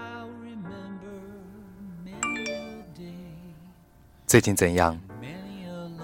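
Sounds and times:
phone message alert chime: 2.2s - 3.2s
low tone: 2.2s - 3.6s
speech: 4.3s - 5.1s.

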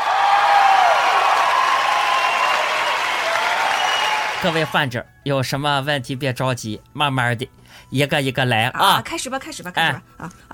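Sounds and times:
crowd applauding: 0.0s - 4.8s
speech: 4.4s - 10.5s.

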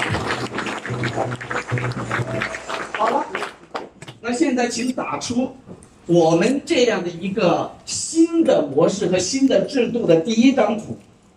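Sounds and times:
audience applause: 0.0s - 4.0s
speech: 1.1s - 3.2s, 4.3s - 11.1s.

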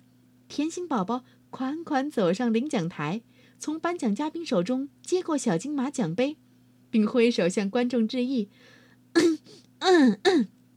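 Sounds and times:
speech: 0.6s - 10.6s
throat clearing: 9.2s - 10.5s.

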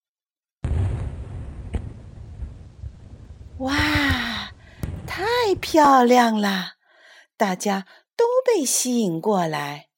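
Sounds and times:
fireworks being set off: 0.6s - 6.0s
speech: 3.6s - 3.9s, 5.5s - 6.8s, 7.4s - 9.9s.

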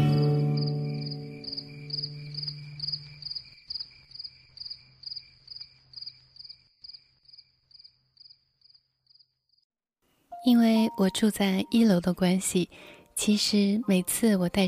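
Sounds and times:
cicadas in garden rockery: 0.0s - 9.6s
frogs in garden rockery: 0.2s - 9.6s
speech: 10.5s - 14.6s.

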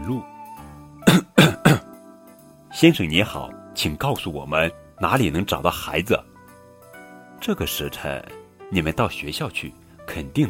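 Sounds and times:
speech: 0.0s - 0.3s, 2.8s - 6.3s, 7.4s - 10.4s
throat clearing: 1.1s - 1.9s.

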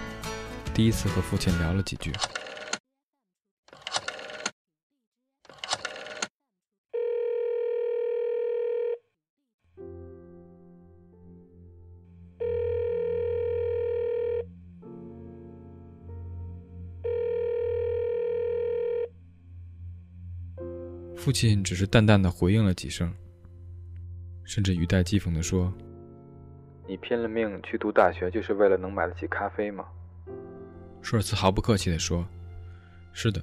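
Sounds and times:
speech: 0.8s - 2.4s, 21.3s - 23.3s, 24.5s - 25.9s, 26.9s - 30.4s, 31.0s - 32.4s, 33.1s - 33.4s
telephone dial tone: 2.2s - 2.8s, 3.7s - 4.6s, 5.5s - 6.3s, 7.0s - 9.0s, 12.4s - 14.5s, 17.0s - 19.1s
low humming bed: 19.1s - 20.6s.

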